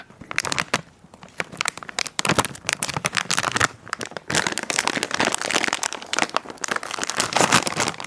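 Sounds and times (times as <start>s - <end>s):
plastic snack bag being torn open: 0.0s - 8.0s.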